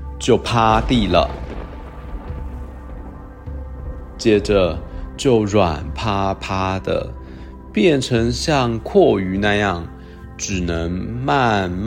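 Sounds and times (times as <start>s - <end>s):
speech: 0.2s - 1.4s, 4.2s - 11.8s
thunder rumbling: 0.2s - 7.7s.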